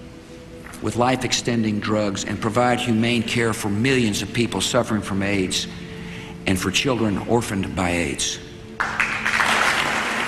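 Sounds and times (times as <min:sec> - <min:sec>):
speech: 0:00.8 - 0:05.9, 0:06.5 - 0:09.1
Congress applauding in archival speech recording: 0:08.8 - 0:10.2.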